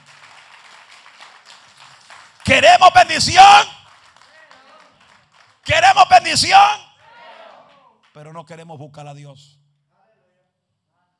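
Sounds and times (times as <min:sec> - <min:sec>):
audience applause: 0:00.0 - 0:03.1, 0:03.7 - 0:06.1
speech: 0:02.5 - 0:03.8, 0:06.0 - 0:06.9, 0:08.2 - 0:09.6.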